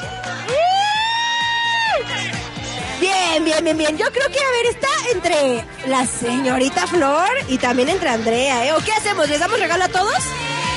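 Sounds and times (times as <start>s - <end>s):
audience applause and cheering for contestant: 0.0s - 2.8s
speech: 3.4s - 10.4s.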